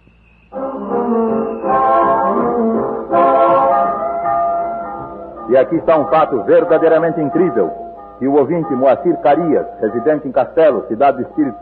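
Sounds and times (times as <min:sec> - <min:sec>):
steam locomotive whistle as train departs: 0:00.1 - 0:09.3
speech: 0:05.5 - 0:11.6.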